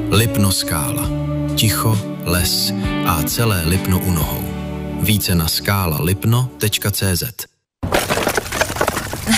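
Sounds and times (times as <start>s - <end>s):
speech: 0.1s - 7.5s
stack of split firewood toppling over: 7.8s - 9.3s.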